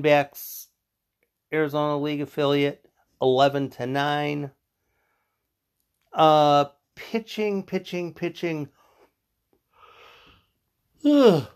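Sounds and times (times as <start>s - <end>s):
speech: 0.0s - 0.6s, 1.5s - 4.6s, 6.1s - 8.8s, 11.0s - 11.5s
person yawning: 11.0s - 11.5s.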